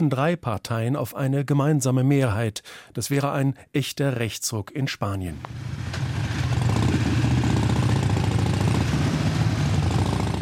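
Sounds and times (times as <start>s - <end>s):
speech: 0.0s - 6.0s
group of 30 motorcycle engines on a tour in the Sierra near Madrid: 5.4s - 10.4s.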